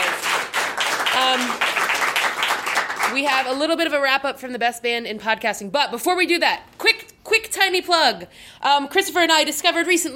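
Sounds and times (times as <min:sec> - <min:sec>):
crowd applauding storytellers: 0:00.0 - 0:03.4
speech: 0:01.3 - 0:01.6, 0:03.1 - 0:10.1.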